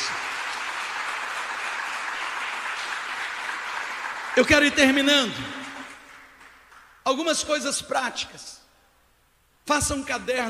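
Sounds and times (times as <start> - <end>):
audience applauding: 0.0 - 7.0
speech: 4.4 - 5.6, 7.1 - 8.6, 9.6 - 10.4.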